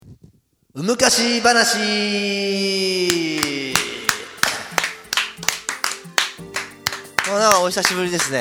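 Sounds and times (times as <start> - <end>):
speech: 0.8 - 3.8, 7.4 - 8.3
half-hearted applause: 2.9 - 8.3.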